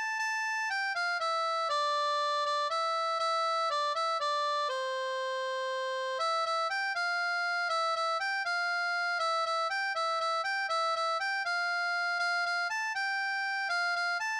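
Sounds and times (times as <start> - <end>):
melodica: 0.6 - 14.3.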